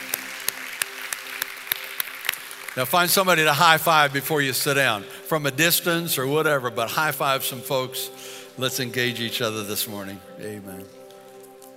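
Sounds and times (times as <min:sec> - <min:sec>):
audience clapping: 0:00.0 - 0:04.5
speech: 0:02.8 - 0:11.0.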